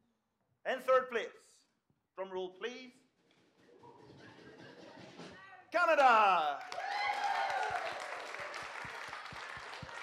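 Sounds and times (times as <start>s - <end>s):
speech: 0.7s - 1.6s, 2.2s - 3.0s, 5.7s - 6.8s
round of applause: 5.9s - 10.0s
person cheering and whooping: 6.6s - 10.0s.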